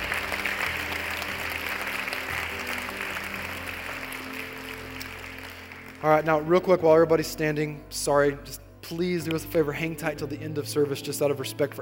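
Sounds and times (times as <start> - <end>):
church congregation applauding: 0.0 - 6.6
speech: 6.0 - 11.8.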